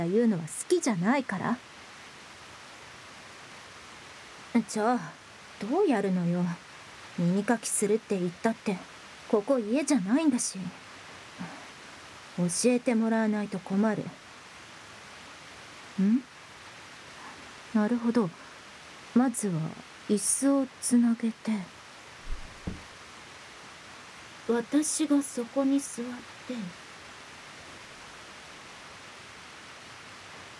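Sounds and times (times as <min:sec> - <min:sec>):
rain: 0:00.0 - 0:30.5
ear cleaning scratching in the left ear: 0:22.2 - 0:22.8.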